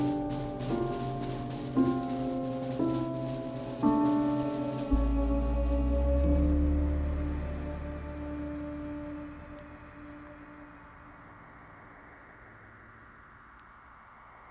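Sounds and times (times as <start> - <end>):
tango music: 0.0 - 10.8.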